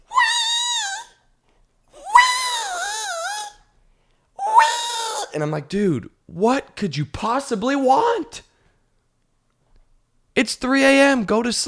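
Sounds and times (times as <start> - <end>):
voice imitating a cat screaming at night: 0.0 - 1.2, 1.9 - 3.7, 4.4 - 5.4
speech: 5.4 - 8.5, 10.4 - 11.6.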